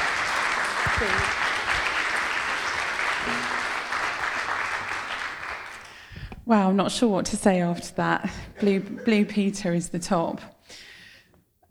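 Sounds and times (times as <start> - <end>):
audience applause welcoming a speaker onto the stage: 0.0 - 6.1
speech: 1.0 - 1.4, 6.5 - 10.5.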